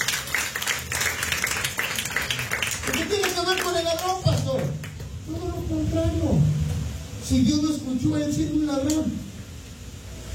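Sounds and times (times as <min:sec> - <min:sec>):
church congregation clapping in praise to God: 0:00.0 - 0:05.2
speech: 0:02.9 - 0:06.6, 0:07.3 - 0:09.2.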